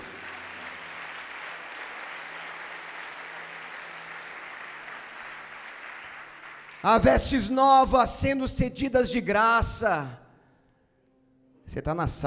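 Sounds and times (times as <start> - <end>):
audience applause: 0.0 - 7.6
speech: 6.8 - 10.2, 11.7 - 12.2.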